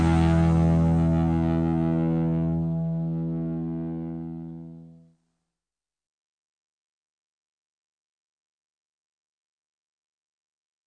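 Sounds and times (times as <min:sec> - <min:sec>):
rock playback: 0:00.0 - 0:02.6
rock and blues guitar solos: 0:00.0 - 0:04.9.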